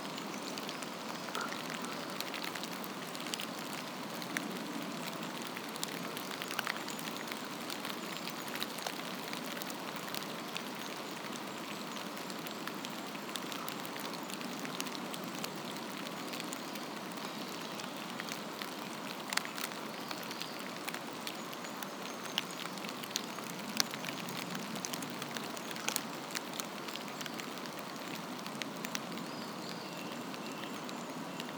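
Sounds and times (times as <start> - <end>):
forest rain: 0.0 - 31.5.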